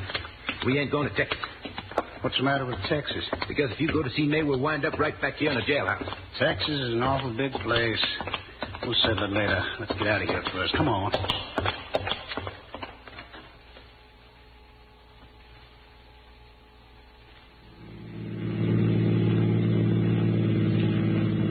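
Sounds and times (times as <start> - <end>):
speech: 0.6 - 1.6, 2.2 - 11.8
car engine starting, idling and revving as the car pulls away: 17.8 - 21.4.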